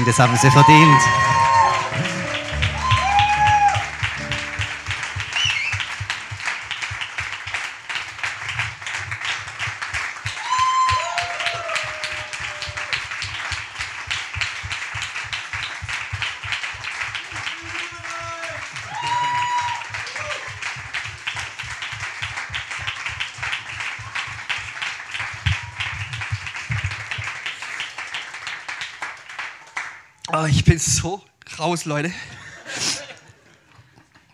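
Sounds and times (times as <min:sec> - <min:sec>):
speech: 0:00.0 - 0:01.4, 0:31.8 - 0:32.4
scattered whistles and cheering voices: 0:00.0 - 0:06.0, 0:10.3 - 0:13.0, 0:18.8 - 0:20.5
crowd applause: 0:00.0 - 0:30.0
laughter: 0:32.2 - 0:34.3.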